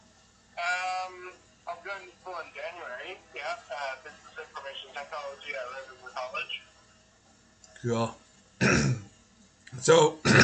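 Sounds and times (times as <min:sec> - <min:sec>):
speech: 0:02.4 - 0:06.8, 0:07.8 - 0:09.0, 0:09.8 - 0:10.2
short gruff throat clearing: 0:08.6 - 0:09.1, 0:10.2 - 0:10.4.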